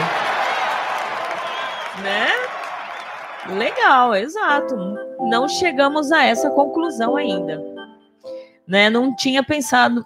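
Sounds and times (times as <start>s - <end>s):
audience clapping and cheering: 0.0s - 4.1s
speech: 2.0s - 2.6s, 3.4s - 7.7s, 8.7s - 10.0s.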